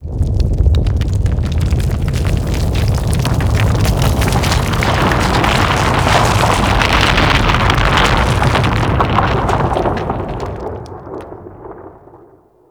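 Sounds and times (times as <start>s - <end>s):
excavation spawn rumble: 0.0s - 12.4s.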